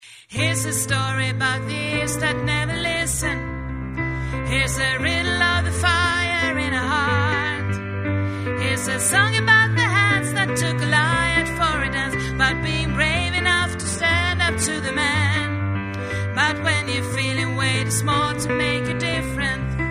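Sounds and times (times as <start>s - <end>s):
soprano voice: 0.0s - 3.5s, 4.3s - 7.8s, 8.5s - 19.8s.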